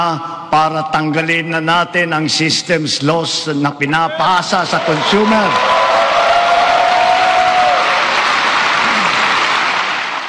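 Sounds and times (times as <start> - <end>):
speech: 0.0 - 6.0
crowd cheering: 4.1 - 10.2
long applause: 4.7 - 10.2.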